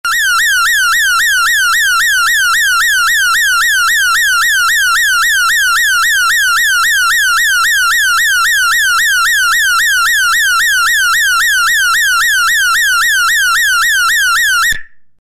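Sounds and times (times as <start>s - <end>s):
synthetic alarm: 0.0s - 14.8s.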